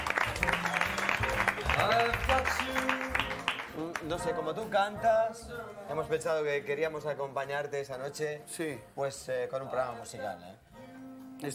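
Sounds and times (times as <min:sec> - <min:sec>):
audience clapping: 0:00.0 - 0:04.2
speech: 0:04.0 - 0:10.7, 0:11.4 - 0:11.5.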